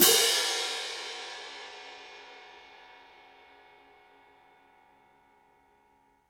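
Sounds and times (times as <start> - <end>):
orchestral cymbal crash: 0.0 - 3.0.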